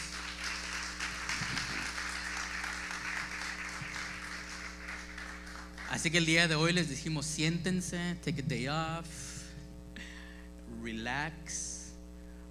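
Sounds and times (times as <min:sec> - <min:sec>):
audience applause for pastors: 0:00.0 - 0:06.1
speech: 0:05.9 - 0:09.2, 0:10.8 - 0:11.7.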